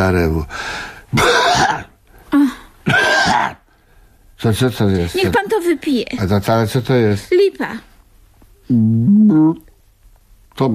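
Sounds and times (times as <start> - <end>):
speech: 0.0 - 2.5, 4.4 - 7.9, 8.7 - 9.7
person coughing: 1.2 - 1.9, 2.8 - 3.6
throat clearing: 2.9 - 3.6.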